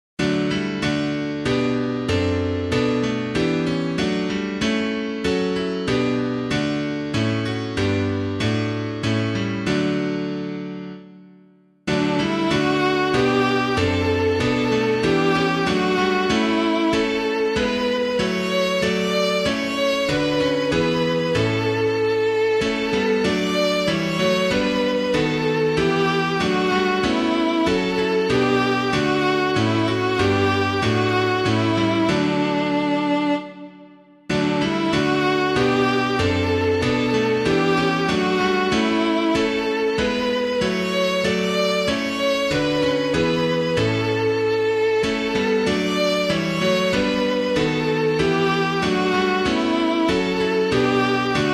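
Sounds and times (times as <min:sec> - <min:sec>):
piano piece: 0:00.2 - 0:51.5.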